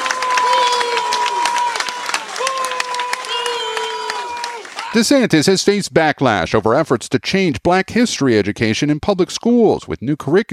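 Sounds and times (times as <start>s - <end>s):
crowd booing: 0.0s - 5.3s
speech: 5.0s - 10.5s.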